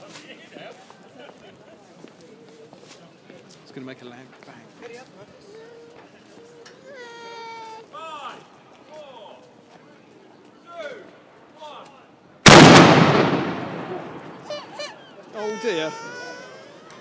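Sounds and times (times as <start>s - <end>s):
very big cannon bang: 12.5s - 14.5s.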